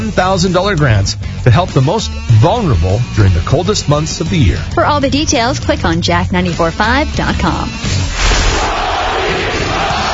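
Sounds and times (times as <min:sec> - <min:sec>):
speech: 0:00.1 - 0:08.8
large Russian crowd chanting a name in unison: 0:08.2 - 0:10.1.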